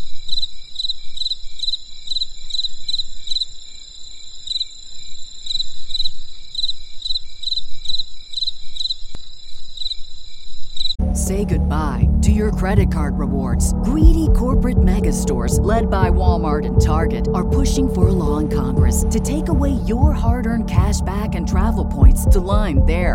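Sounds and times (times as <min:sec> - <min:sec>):
cricket chirping in pulsed bursts: 0:00.0 - 0:11.0
steady high insect hum: 0:00.0 - 0:11.1
speech: 0:11.4 - 0:23.1.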